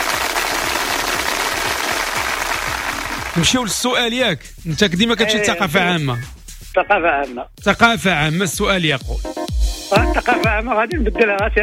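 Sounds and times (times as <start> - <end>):
audience applause at a quiz show: 0.0 - 3.7
speech: 3.4 - 11.6.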